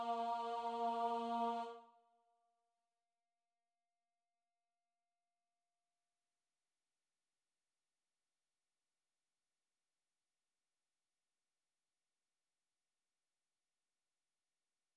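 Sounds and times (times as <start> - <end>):
tenor singing chorus: 0.0 - 1.8.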